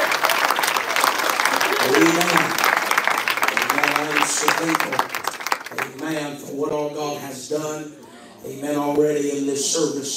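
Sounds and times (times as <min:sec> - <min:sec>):
audience clapping: 0:00.0 - 0:06.4
speech: 0:06.1 - 0:10.1.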